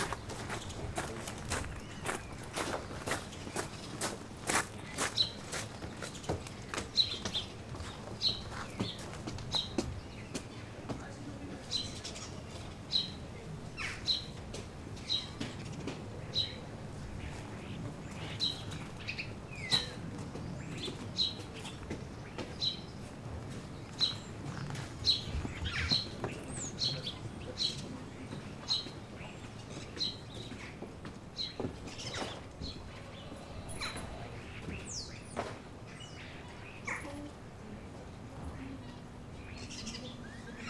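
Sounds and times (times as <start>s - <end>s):
early morning soundscape at Mont Saint Michel: 0.0s - 40.6s.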